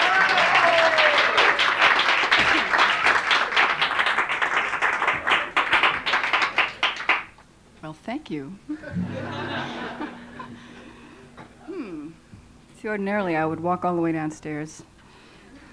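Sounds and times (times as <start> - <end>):
laughter: 0.0 - 7.3, 8.6 - 13.9, 15.2 - 15.7
audience applause at a live concert: 0.0 - 7.4, 8.8 - 11.7
speech: 8.3 - 10.2, 12.8 - 14.9.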